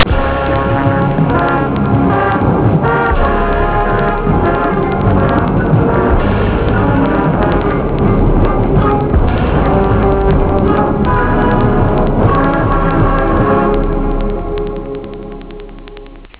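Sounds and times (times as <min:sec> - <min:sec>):
short theme music: 0:00.0 - 0:16.3.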